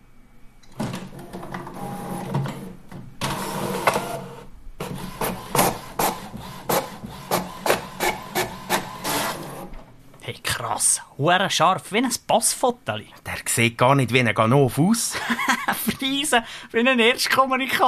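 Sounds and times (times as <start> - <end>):
printer printing out a screenshot: 0.8 - 9.9
speech: 10.6 - 17.8
laughter: 15.1 - 16.1.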